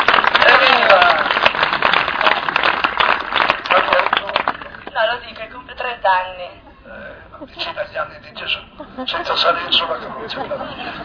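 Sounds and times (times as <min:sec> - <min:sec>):
applause: 0:00.0 - 0:05.5
speech: 0:06.1 - 0:06.7, 0:07.4 - 0:11.0
laughter: 0:08.4 - 0:11.0.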